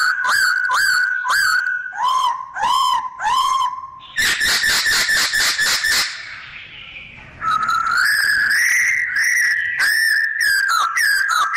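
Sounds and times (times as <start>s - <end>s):
bird singing: 0.0s - 11.5s.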